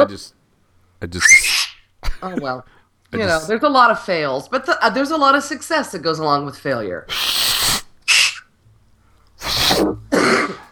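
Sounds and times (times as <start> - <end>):
speech: 0.0 - 0.4, 1.0 - 1.5, 2.2 - 7.4
sneeze: 1.2 - 2.3, 7.1 - 8.5, 9.4 - 10.6.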